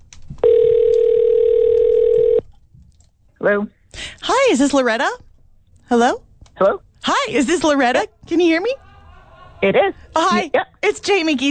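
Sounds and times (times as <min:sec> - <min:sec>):
telephone call ringing out: 0:00.4 - 0:02.4
speech: 0:03.4 - 0:05.2, 0:05.9 - 0:08.8, 0:09.6 - 0:11.4
laughter: 0:08.8 - 0:10.1.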